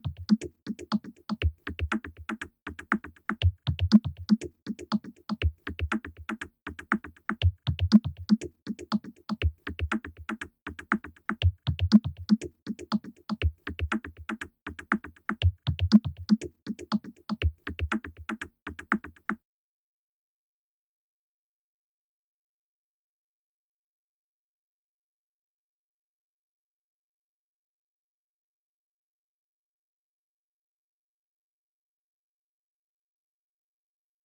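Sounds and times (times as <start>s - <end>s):
pop remix music: 0.0s - 19.4s.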